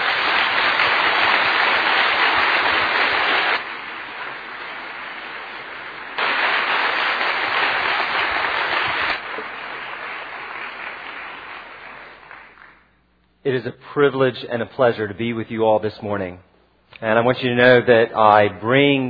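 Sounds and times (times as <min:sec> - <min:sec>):
audience clapping: 0:00.0 - 0:13.0
speech: 0:13.5 - 0:19.0.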